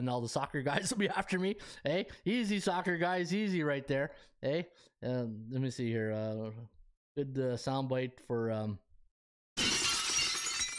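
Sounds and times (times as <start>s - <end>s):
speech: 0.0s - 8.8s
door being smashed in sound effect: 9.6s - 10.7s
shattering debris clattering: 9.6s - 10.7s.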